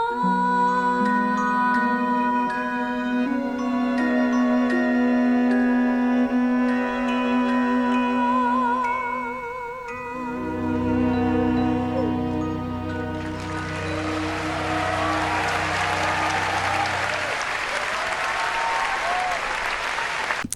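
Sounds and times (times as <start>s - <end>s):
musical theatre song final sustained notes: 0.0s - 20.4s
audience applause after a musical theatre song: 13.0s - 20.5s.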